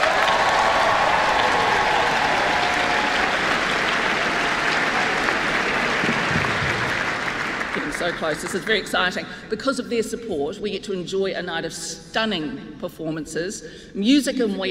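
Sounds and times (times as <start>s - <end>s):
audience applause: 0.0s - 9.1s
speech: 8.1s - 14.6s.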